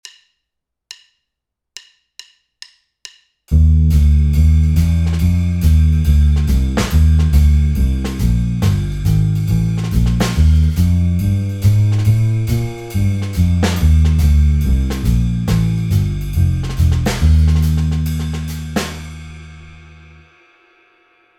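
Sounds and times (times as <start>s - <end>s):
Ebmaj7 instrumental backing track without piano: 3.5s - 20.1s.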